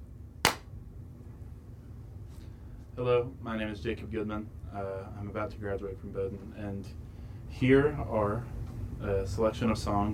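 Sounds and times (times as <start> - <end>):
hand clap: 0.4 - 0.7
speech: 3.0 - 10.1.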